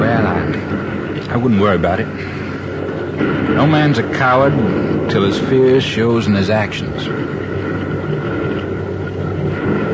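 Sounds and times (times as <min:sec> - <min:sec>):
boat engines approaching: 0:00.0 - 0:09.9
speech: 0:01.3 - 0:02.4, 0:03.2 - 0:07.4.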